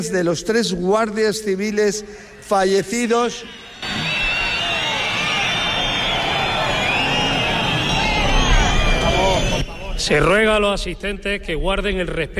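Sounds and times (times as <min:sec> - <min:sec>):
speech: 0:00.0 - 0:04.1, 0:10.0 - 0:12.3
crowd booing and whistling: 0:02.6 - 0:10.8.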